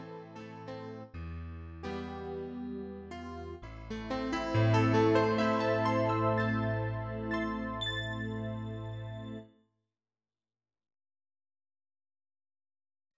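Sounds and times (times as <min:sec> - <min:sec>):
piano: 0:00.0 - 0:09.5.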